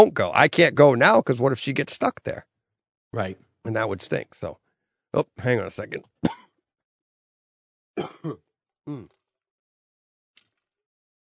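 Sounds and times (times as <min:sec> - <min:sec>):
speech: 0:00.0 - 0:02.5, 0:03.1 - 0:06.4, 0:08.0 - 0:09.2
person coughing: 0:06.2 - 0:06.5, 0:08.0 - 0:09.2.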